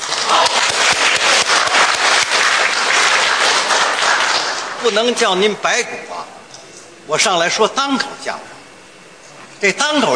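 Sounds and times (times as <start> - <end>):
audience applause: 0.0 - 5.0
speech: 4.9 - 6.1, 7.1 - 8.5, 9.6 - 10.1.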